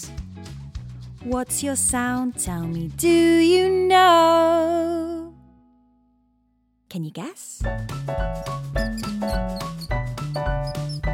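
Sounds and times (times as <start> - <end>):
speech: 1.2 - 5.3, 6.9 - 9.9
mouse squeaking: 8.8 - 11.1.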